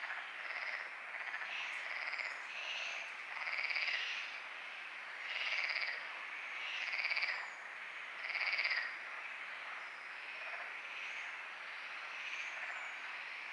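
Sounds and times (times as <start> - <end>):
frogs calling at night: 0.0 - 13.5.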